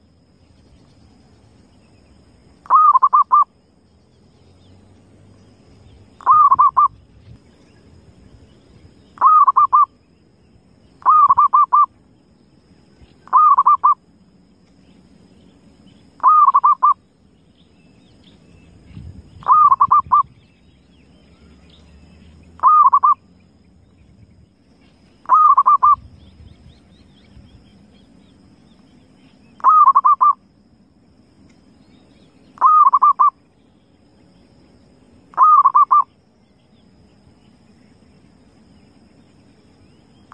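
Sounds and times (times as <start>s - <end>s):
zebra dove cooing: 2.7s - 3.5s, 6.2s - 7.0s, 9.2s - 9.9s, 11.0s - 11.9s, 13.2s - 14.0s, 16.2s - 17.0s, 19.4s - 20.3s, 22.6s - 23.2s, 25.2s - 26.1s, 29.6s - 30.4s, 32.6s - 33.4s, 35.3s - 36.1s.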